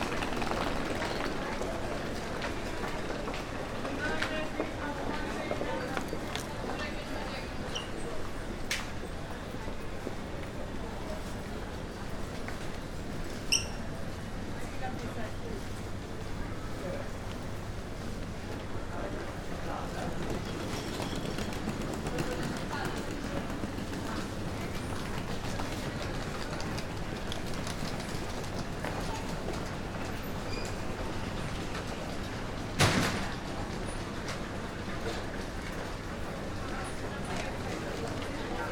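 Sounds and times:
busy morning metro rush crowd in underground path in New York: 0:00.0 - 0:38.7.

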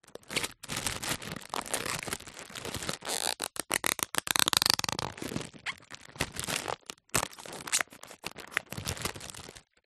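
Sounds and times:
finger rubbing squeaks on foil banner: 0:01.4 - 0:06.4, 0:07.3 - 0:09.1.

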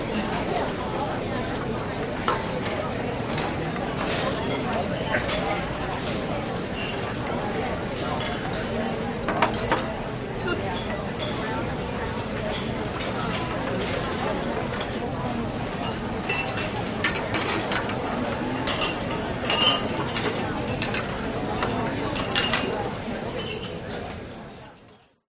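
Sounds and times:
restaurant ambience: 0:00.0 - 0:25.2.

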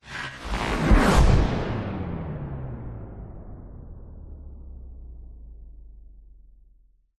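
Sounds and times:
sound design whoosh cracking into slow motion: 0:00.0 - 0:02.8.

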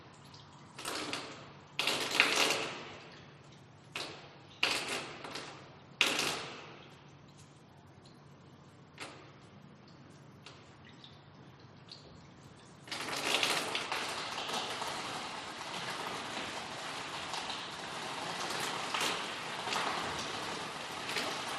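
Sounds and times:
pipes dripping in an old garage: 0:00.0 - 0:21.5.

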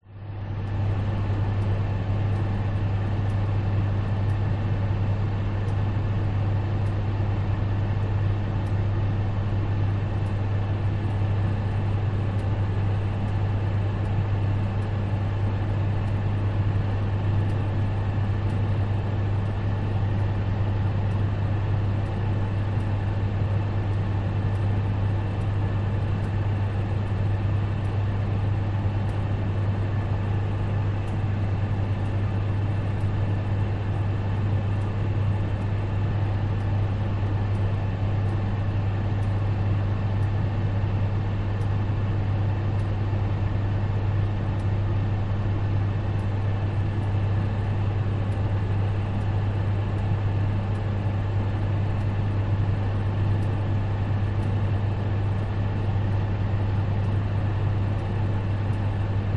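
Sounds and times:
electric oven fan whirring: 0:00.0 - 0:59.3.

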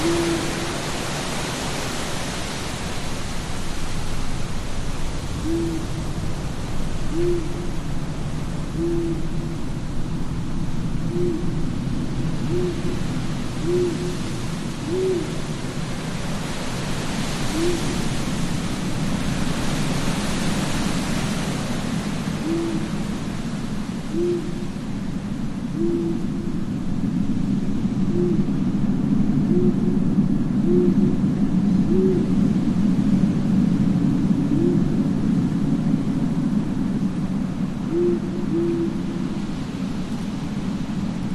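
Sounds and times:
owl hooting: 0:00.0 - 0:00.9, 0:05.4 - 0:06.0, 0:07.1 - 0:07.8, 0:08.8 - 0:09.6, 0:11.1 - 0:11.6, 0:12.5 - 0:15.5, 0:17.5 - 0:18.0, 0:22.4 - 0:23.0, 0:24.1 - 0:24.7, 0:25.7 - 0:26.4, 0:28.1 - 0:28.5, 0:29.5 - 0:29.9, 0:30.6 - 0:31.1, 0:31.9 - 0:32.3, 0:34.5 - 0:34.9, 0:37.9 - 0:39.2
strong steady wind: 0:00.0 - 0:41.3.

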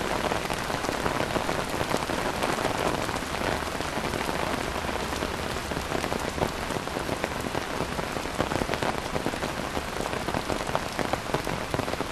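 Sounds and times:
heavy rain on an umbrella in Kuala Lumpur Malaysia: 0:00.0 - 0:12.0.

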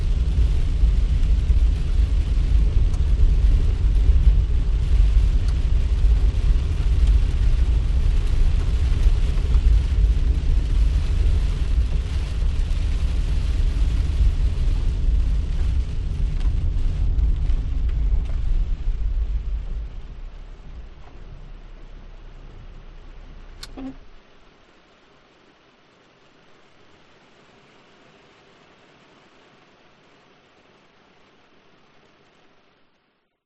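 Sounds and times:
car engine starting: 0:00.0 - 0:24.0
light rain hitting a car windshield: 0:00.0 - 0:33.0.

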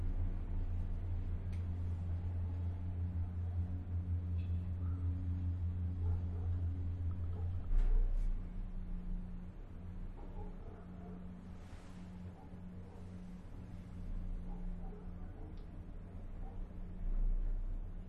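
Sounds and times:
cable car ride: 0:00.0 - 0:18.0.

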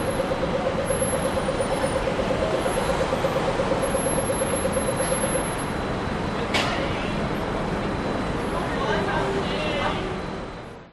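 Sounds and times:
pedestrian crossing beeps in north CBD Sydney: 0:00.0 - 0:06.4
close traffic passing in north CBD Sydney: 0:00.0 - 0:10.8.

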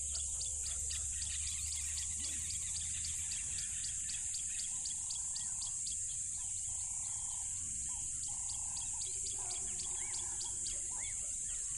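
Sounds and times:
crickets trilling: 0:00.0 - 0:11.7
faint calls: 0:00.0 - 0:11.7.

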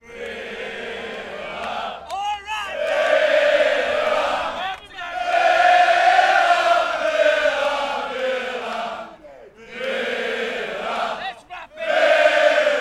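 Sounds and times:
soccer crowd singing and chanting: 0:00.0 - 0:12.7.

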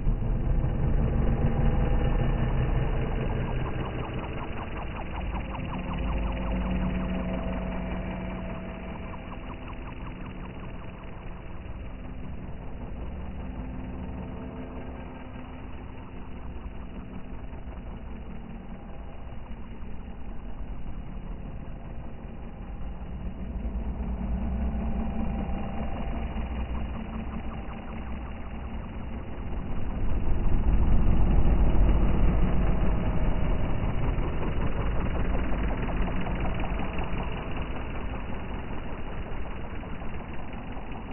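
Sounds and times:
long dark retro vintage drone with modulated elements: 0:00.0 - 0:41.1.

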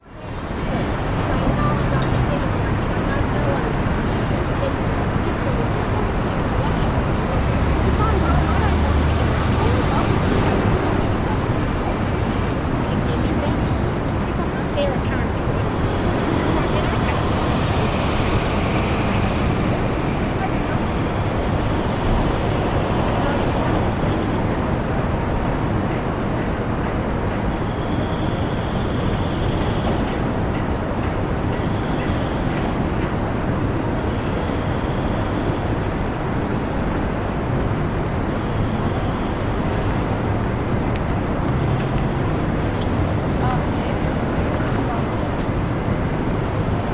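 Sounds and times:
distant city hum in Brisbane CBD Reddacliff Place: 0:00.0 - 0:46.9.

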